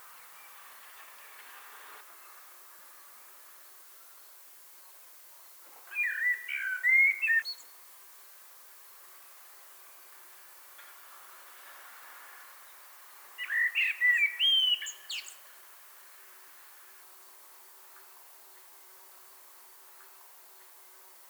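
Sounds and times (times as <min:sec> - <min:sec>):
Common blackbird singing: 0:05.9 - 0:07.6, 0:13.4 - 0:15.4.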